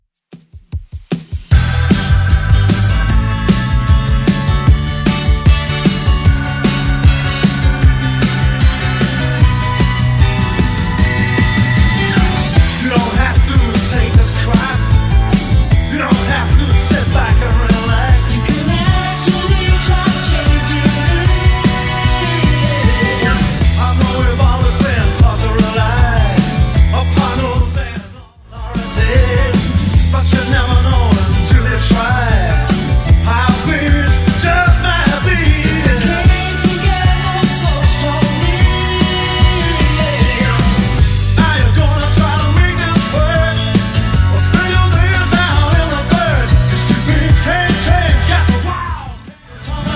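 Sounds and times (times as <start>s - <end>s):
1980s style music: 0.3s - 49.9s.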